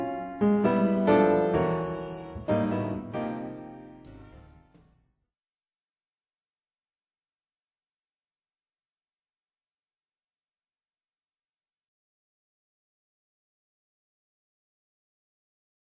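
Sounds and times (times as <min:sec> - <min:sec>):
written solo piano: 0:00.0 - 0:04.7.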